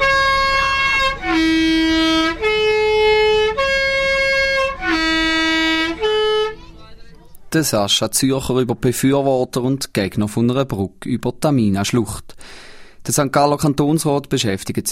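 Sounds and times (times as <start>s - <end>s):
multi-tone vehicle horn honked before a tight curve above the Tamina gorge: 0.0s - 6.7s
speech: 7.6s - 14.8s.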